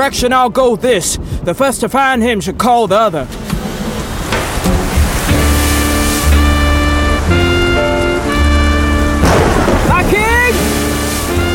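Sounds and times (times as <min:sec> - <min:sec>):
speech: 0:00.0 - 0:03.5
storm wind: 0:00.0 - 0:11.5
heavy rain: 0:03.3 - 0:11.5
low droning tones: 0:04.0 - 0:11.5.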